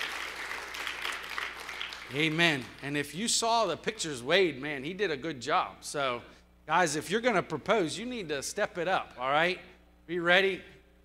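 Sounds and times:
audience applause: 0.0s - 2.7s
speech: 2.1s - 10.7s.

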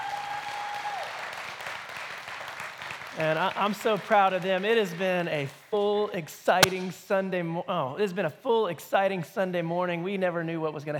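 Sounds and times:
crowd applauding: 0.0s - 4.1s
speech: 3.2s - 10.9s.

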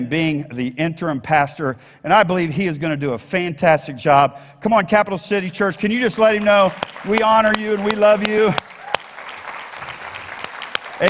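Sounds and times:
speech: 0.0s - 8.7s
audience applause: 6.2s - 11.0s.

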